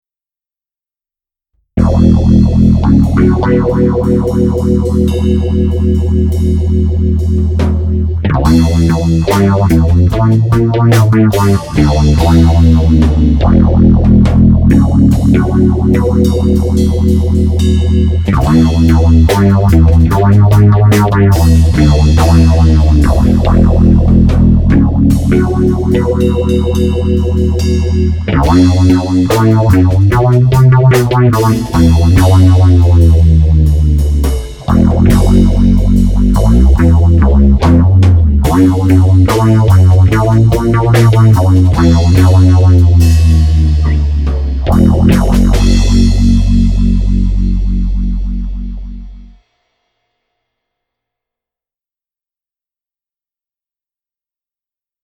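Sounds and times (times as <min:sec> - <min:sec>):
ME-20B guitar effects patch: 0:01.8 - 0:49.4.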